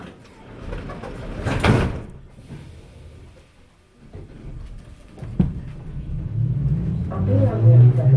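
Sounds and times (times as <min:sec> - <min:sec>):
train doors closing with a rushing hiss: 0:01.9 - 0:03.6
low rumbling background: 0:04.3 - 0:08.1.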